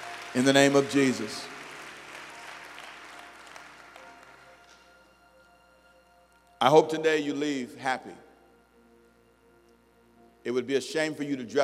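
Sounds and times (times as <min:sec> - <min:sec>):
audience applauding: 0:00.0 - 0:04.8
speech: 0:00.3 - 0:01.5, 0:06.6 - 0:08.2, 0:10.4 - 0:11.6.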